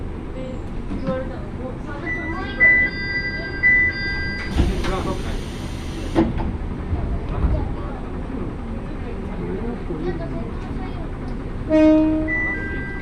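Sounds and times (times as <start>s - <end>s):
single-car railbus rumbling: 0.0s - 13.0s
passengers chattering in a crowded railbus: 0.3s - 5.7s, 6.6s - 13.0s
short high beeping tones: 2.1s - 4.5s.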